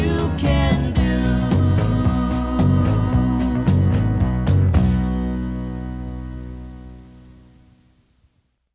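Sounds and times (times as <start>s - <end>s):
children's song about short vowels: 0.0s - 4.6s.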